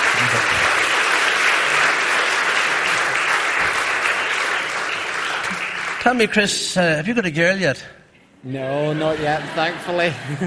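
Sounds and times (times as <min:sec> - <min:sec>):
audience applause: 0:00.0 - 0:06.6
speech: 0:06.0 - 0:10.4
laughter: 0:08.6 - 0:10.4.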